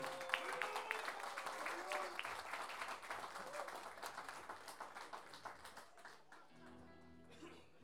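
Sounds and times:
audience applause: 0.0s - 7.3s.

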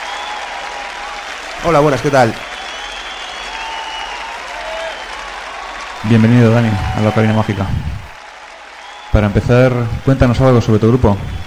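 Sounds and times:
audience applause welcoming a guest guitarist: 0.0s - 11.4s
speech: 1.6s - 2.5s, 6.1s - 8.0s, 9.2s - 11.4s.

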